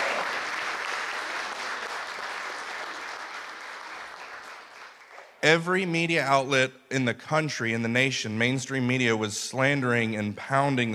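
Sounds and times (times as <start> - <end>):
audience applause: 0.0 - 5.4
speech: 5.4 - 10.9.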